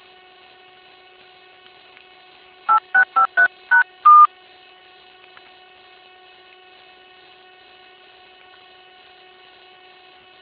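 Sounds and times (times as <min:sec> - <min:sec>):
telephone keypad tones dialing a conference passcode: 0:02.7 - 0:04.3.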